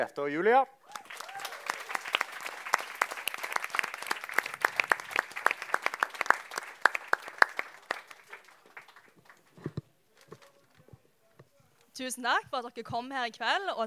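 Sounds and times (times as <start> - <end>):
speech: 0.0 - 0.8, 12.0 - 13.8
audience applause: 0.9 - 9.7.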